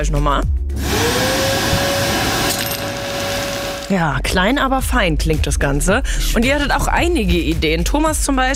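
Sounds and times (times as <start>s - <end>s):
speech: 0.0s - 1.5s, 3.9s - 8.5s
vacuum cleaner droning: 0.7s - 3.9s.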